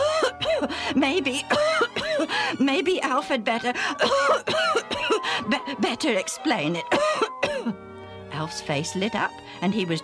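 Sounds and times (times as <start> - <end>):
person coughing: 0.0 - 0.7, 1.4 - 2.4, 3.9 - 5.7, 6.9 - 7.8
speech: 1.0 - 1.8, 2.6 - 5.2, 5.8 - 7.7, 8.4 - 10.0.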